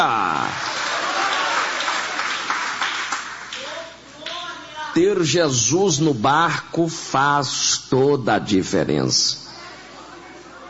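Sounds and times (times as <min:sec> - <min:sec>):
audience applauding: 0:00.0 - 0:03.7
speech: 0:05.0 - 0:09.4.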